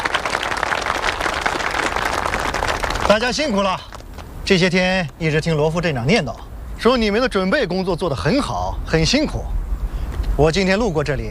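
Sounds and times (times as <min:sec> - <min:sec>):
warm welcoming applause from a crowd: 0:00.0 - 0:04.4
speech: 0:03.2 - 0:03.9, 0:04.5 - 0:09.6, 0:10.4 - 0:11.2.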